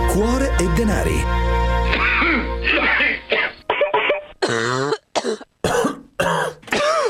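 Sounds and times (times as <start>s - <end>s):
speech: 0.2s - 1.5s
coughing: 1.9s - 7.0s
throat clearing: 1.9s - 7.0s.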